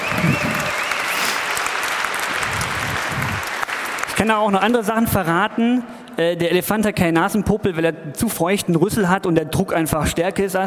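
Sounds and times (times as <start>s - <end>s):
audience applause: 0.0s - 4.4s
speech: 4.2s - 10.6s.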